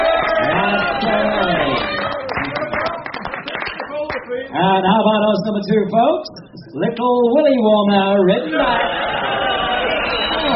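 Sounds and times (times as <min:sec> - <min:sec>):
audience applause: 0:00.0 - 0:04.4, 0:08.6 - 0:10.5
speech: 0:04.6 - 0:09.0.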